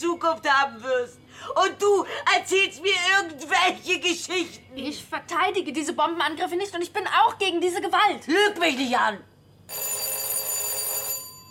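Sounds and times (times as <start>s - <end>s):
speech: 0.0s - 9.9s
doorbell ringing with a bright shrill metallic tone: 9.7s - 11.4s.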